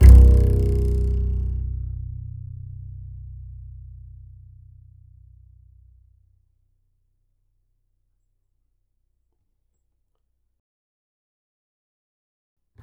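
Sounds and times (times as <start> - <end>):
upright acoustic bass in E: 0.0 - 5.9.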